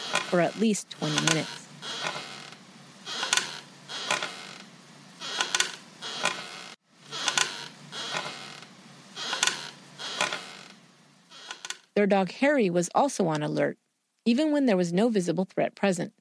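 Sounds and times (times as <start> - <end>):
rocking chair creaking back and forth: 0.0 - 11.9
faint hiss: 0.0 - 16.1
speech: 0.3 - 2.0, 12.0 - 16.1.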